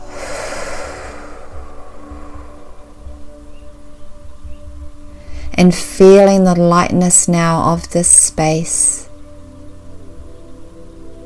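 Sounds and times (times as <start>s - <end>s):
deep breath in and out through the mouth: 0.0s - 3.6s
quiet sustained tones: 0.0s - 11.2s
speech: 5.6s - 9.0s.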